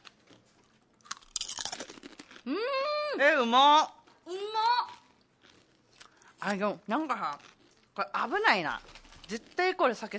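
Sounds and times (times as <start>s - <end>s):
person chewing a crispy chicken skin snack: 0.0s - 2.6s, 4.8s - 6.6s, 7.3s - 8.0s
speech: 2.4s - 4.9s, 6.4s - 10.1s.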